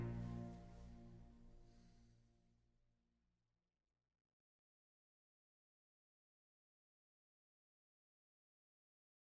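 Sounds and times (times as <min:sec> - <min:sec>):
instrumental music: 0:00.0 - 0:01.4.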